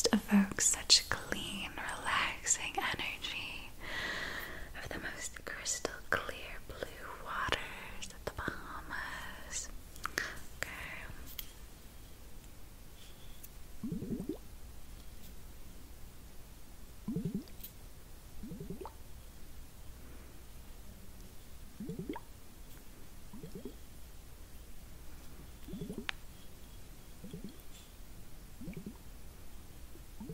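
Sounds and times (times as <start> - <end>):
faint steady hiss: 0.0 - 30.3
speech: 0.1 - 1.1
liquid bubbling inside glass facial globes: 13.8 - 14.5, 17.0 - 17.6, 18.4 - 19.0, 21.7 - 22.4, 23.2 - 23.8, 25.6 - 26.1, 27.1 - 27.7, 28.5 - 29.1.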